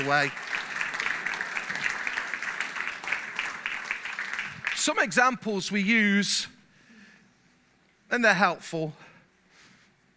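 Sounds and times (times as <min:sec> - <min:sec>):
speech: 0:00.0 - 0:00.5, 0:04.8 - 0:06.5, 0:08.1 - 0:09.0
applause: 0:00.0 - 0:05.5.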